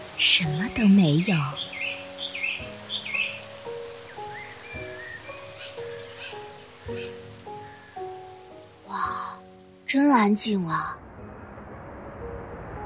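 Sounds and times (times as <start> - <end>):
waterfall: 0.0 - 12.8
speech: 0.2 - 1.8, 9.9 - 11.0
birds chirping: 0.3 - 9.8.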